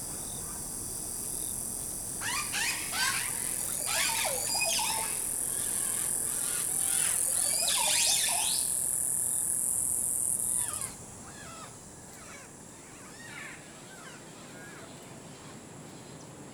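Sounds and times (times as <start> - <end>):
high insect whine: 0.0 - 14.9
birds calling in the Costa Rican forest: 2.2 - 8.8.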